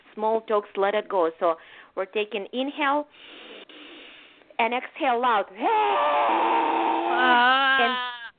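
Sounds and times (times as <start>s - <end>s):
speech: 0.2s - 3.5s, 4.6s - 8.1s
person imitating lion roar: 5.6s - 8.3s.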